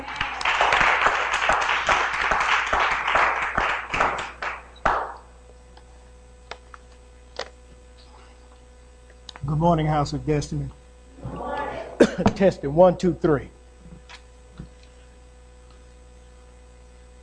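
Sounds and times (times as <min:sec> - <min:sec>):
audience clapping hands in praise in a large room: 0:00.0 - 0:05.2
speech: 0:09.6 - 0:10.8, 0:12.2 - 0:13.6.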